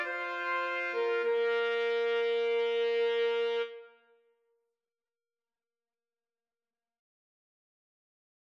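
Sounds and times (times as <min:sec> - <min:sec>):
saxophone: 0:00.0 - 0:04.2
trumpet: 0:00.0 - 0:04.3.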